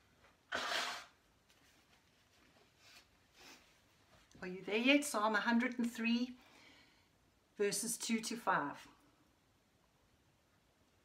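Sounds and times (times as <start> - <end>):
person blowing nose: 0.5 - 1.2
speech: 4.4 - 6.4, 7.6 - 9.0.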